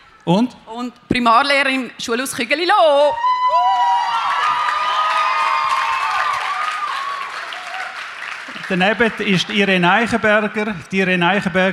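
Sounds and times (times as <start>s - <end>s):
speech: 0.2s - 3.8s, 8.7s - 11.7s
audience applause: 3.6s - 11.2s.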